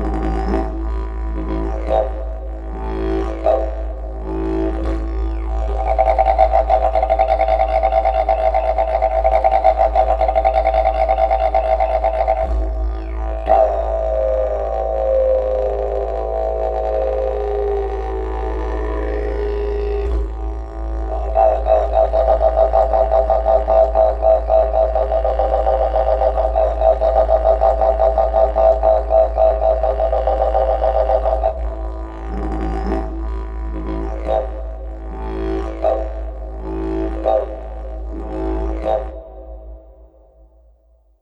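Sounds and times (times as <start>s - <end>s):
didgeridoo playing: 0.0s - 40.6s.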